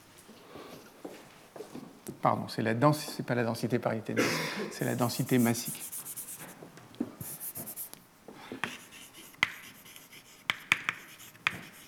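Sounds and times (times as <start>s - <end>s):
speech: 2.2s - 6.0s
writing on a board during a physics lecture: 4.8s - 6.6s, 7.2s - 11.8s
writing implement tapping the board: 10.5s - 11.8s.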